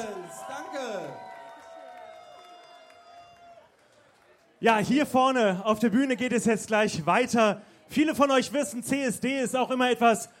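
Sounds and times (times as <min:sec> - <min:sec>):
audience applause and cheering: 0:00.0 - 0:04.4
speech: 0:04.6 - 0:10.3.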